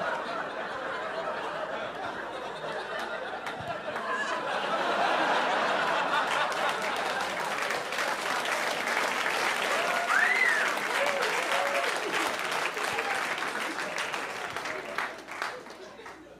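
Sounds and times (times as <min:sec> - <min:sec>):
laughter: 0:00.0 - 0:16.3
crowd applauding: 0:02.6 - 0:16.3
whoops: 0:09.7 - 0:12.3.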